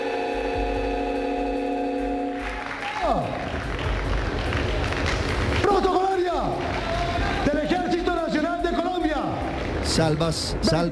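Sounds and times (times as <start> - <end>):
sustained droning tone: 0.0 - 2.8
applause in the USC Arena auditorium at a Colombian presidential inauguration: 2.3 - 10.9
speech: 10.0 - 10.9.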